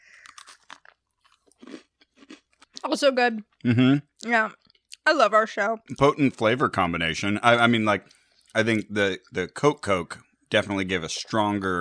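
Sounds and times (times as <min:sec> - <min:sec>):
person chewing a lemon Oreo cookie: 0:00.1 - 0:03.0
speech: 0:02.9 - 0:11.8.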